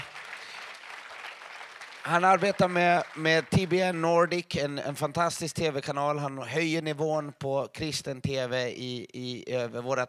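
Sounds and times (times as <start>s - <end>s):
audience applause: 0.0s - 4.0s
speech: 2.0s - 10.0s.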